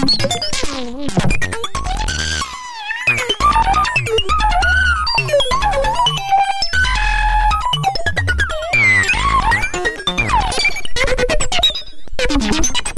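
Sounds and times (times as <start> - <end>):
synthesizer improvisation: 0.1 - 12.8.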